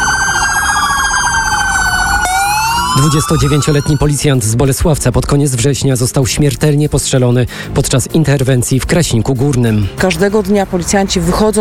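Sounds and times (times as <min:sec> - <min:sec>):
police car sirens wailing: 0:00.0 - 0:04.4
speech: 0:03.0 - 0:11.5.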